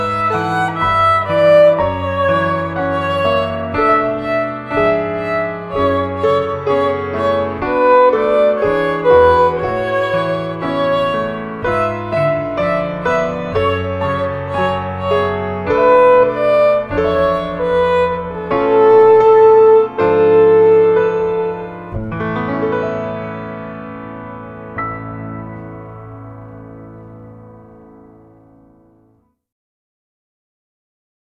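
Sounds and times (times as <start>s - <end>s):
violin playing instrumental piece: 0.0s - 23.0s.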